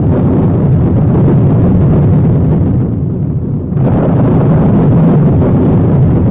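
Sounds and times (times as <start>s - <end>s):
deep thunder rumbling: 0.0s - 6.2s
heavy rain pouring in a thunderstorm: 2.8s - 6.2s.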